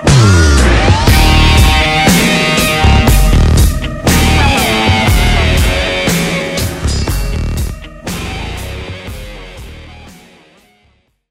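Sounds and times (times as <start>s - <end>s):
distant drum: 0.0s - 8.6s.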